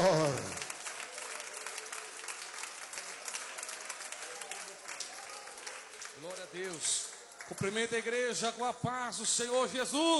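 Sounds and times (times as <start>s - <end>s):
audience applause: 0.0s - 8.0s
speech: 6.5s - 10.1s.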